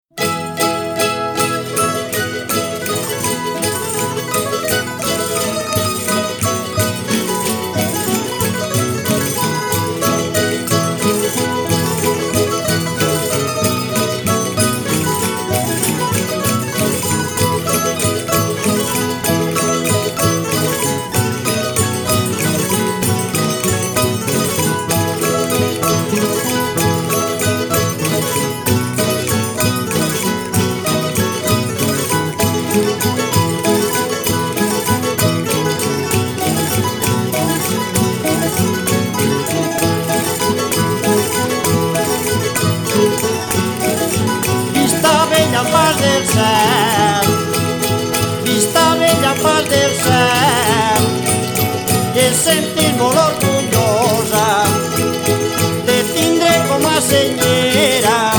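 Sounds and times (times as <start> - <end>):
jota and fandango folk music: 0.0 - 58.3.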